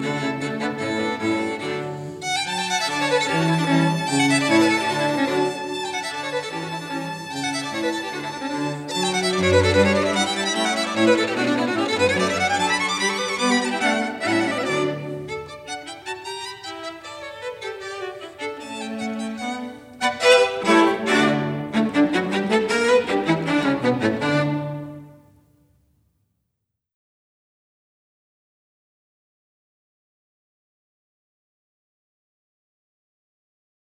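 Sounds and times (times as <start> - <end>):
string quartet: 0.0 - 25.2.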